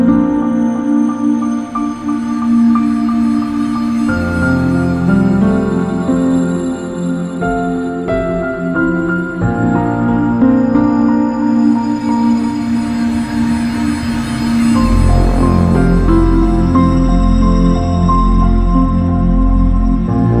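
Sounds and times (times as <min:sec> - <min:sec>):
sci-fi soundscape: 0:00.0 - 0:20.3.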